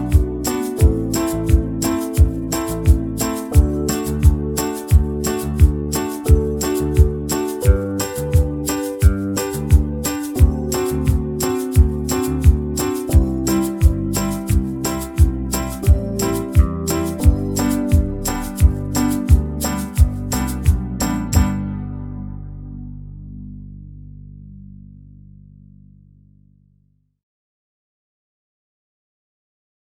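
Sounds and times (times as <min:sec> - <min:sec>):
slow banjo backing track in G: 0:00.0 - 0:21.8.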